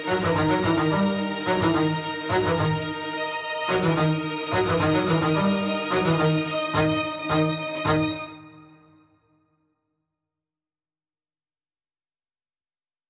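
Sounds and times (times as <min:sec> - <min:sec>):
string instruments mix: 0:00.0 - 0:09.2.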